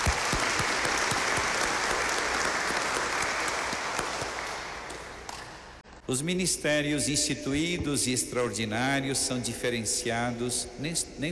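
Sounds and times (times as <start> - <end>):
applause: 0.0 - 5.8
speech: 6.1 - 11.3.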